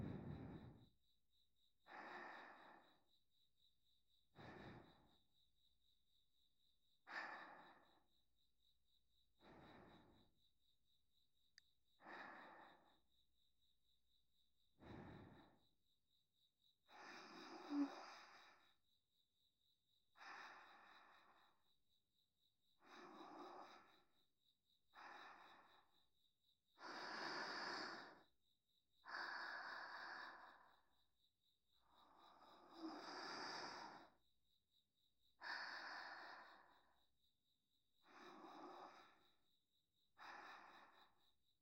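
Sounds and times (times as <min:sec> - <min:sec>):
sleep breathing on the right: 0:00.0 - 0:00.9, 0:01.8 - 0:03.1, 0:04.3 - 0:05.2, 0:07.1 - 0:08.1, 0:09.4 - 0:10.4, 0:12.0 - 0:13.0, 0:14.8 - 0:15.7, 0:16.9 - 0:18.7, 0:20.2 - 0:21.6, 0:22.8 - 0:24.1, 0:24.9 - 0:25.9, 0:26.8 - 0:28.4, 0:29.0 - 0:31.0, 0:31.8 - 0:34.2, 0:35.4 - 0:37.0, 0:38.0 - 0:39.4, 0:40.2 - 0:41.2.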